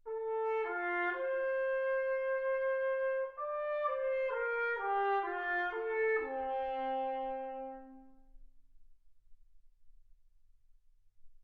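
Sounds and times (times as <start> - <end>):
trumpet: 0.0 - 8.5.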